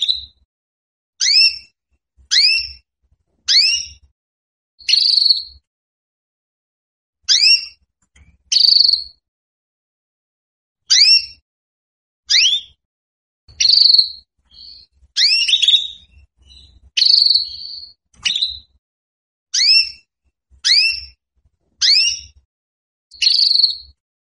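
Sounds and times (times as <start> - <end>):
female Belgian canary calling for mating: 0.0 - 0.4, 1.2 - 1.7, 2.3 - 2.8, 3.5 - 4.1, 4.8 - 5.6, 7.3 - 7.8, 8.5 - 9.2, 10.9 - 11.4, 12.2 - 12.8, 13.5 - 18.8, 19.5 - 21.2, 21.8 - 22.4, 23.1 - 24.0.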